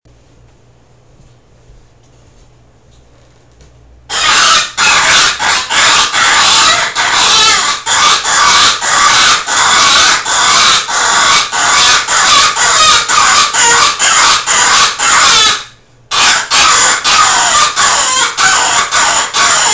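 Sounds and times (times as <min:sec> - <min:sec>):
rabbit squealing: 0:04.1 - 0:19.7.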